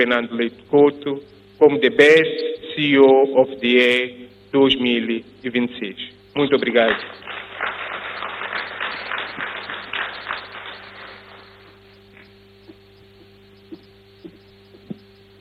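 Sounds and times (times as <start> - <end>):
speech: 0.0 - 7.3
audience applause: 6.8 - 11.8.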